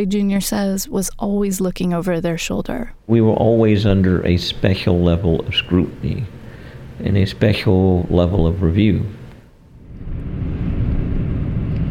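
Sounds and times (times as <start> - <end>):
speech: 0.0 - 6.4, 7.0 - 9.2
road noise: 3.4 - 11.8
car engine rumble driving around the former Soul City: 8.1 - 11.8.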